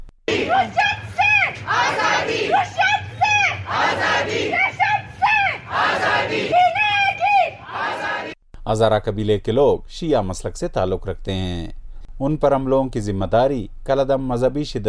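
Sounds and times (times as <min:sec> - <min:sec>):
protest crowd chanting slogans: 0:00.3 - 0:06.8, 0:07.4 - 0:08.4
speech: 0:08.7 - 0:14.8.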